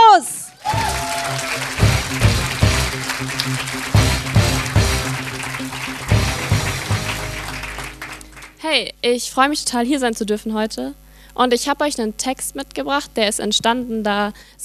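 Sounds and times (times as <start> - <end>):
audience applause: 0.6 - 8.6
speech: 8.7 - 14.6.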